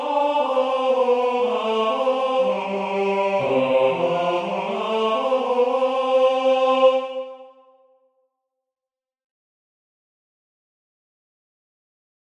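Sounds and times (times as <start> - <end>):
tenor singing a hymn: 0.0 - 7.7.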